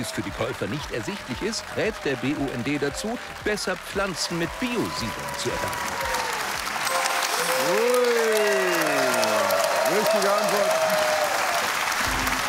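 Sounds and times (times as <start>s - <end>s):
speech: 0.0s - 6.2s, 10.0s - 11.0s
loud audience applause: 0.0s - 12.4s.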